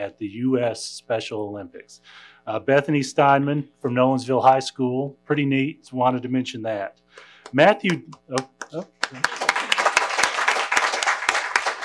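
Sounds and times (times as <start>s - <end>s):
speech: 0.0s - 9.4s
audience applause: 8.4s - 11.8s.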